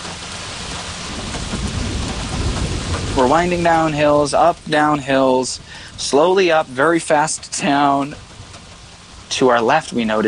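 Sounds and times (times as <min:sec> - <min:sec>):
rain in a thunderstorm: 0:00.0 - 0:10.2
thunder: 0:00.7 - 0:04.4
speech: 0:03.2 - 0:08.3, 0:09.3 - 0:10.2.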